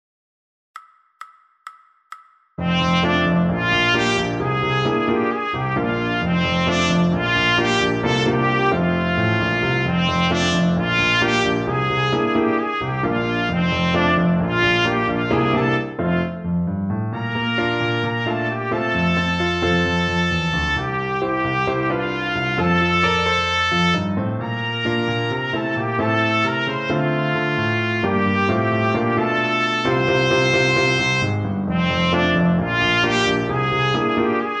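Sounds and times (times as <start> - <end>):
trumpet: 2.6 - 34.5.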